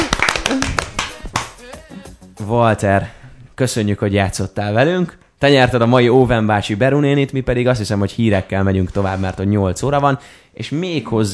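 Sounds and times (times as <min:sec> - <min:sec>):
applause sound effect played on radio: 0:00.0 - 0:01.7
speech: 0:02.4 - 0:11.3.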